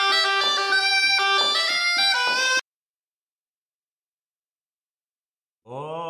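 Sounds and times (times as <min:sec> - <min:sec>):
instrumental medley intro: 0:00.0 - 0:02.6.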